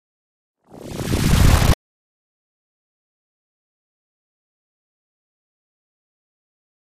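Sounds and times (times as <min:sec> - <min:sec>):
electronic ripple: 0:00.7 - 0:01.8
static: 0:00.7 - 0:01.8.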